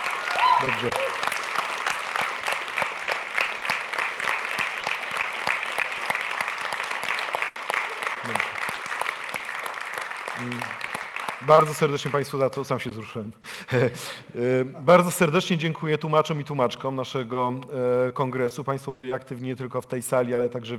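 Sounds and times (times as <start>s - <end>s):
audience applause: 0.0s - 12.3s
speech: 0.6s - 1.2s, 11.5s - 20.7s.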